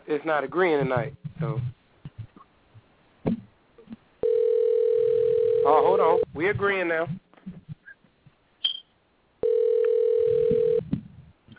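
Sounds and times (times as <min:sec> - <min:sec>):
speech: 0:00.1 - 0:01.8, 0:06.3 - 0:07.2
soft telephone clicks and thumps: 0:00.7 - 0:04.1, 0:06.3 - 0:08.4, 0:09.8 - 0:11.5
telephone dial tone: 0:04.2 - 0:06.2, 0:09.4 - 0:10.8.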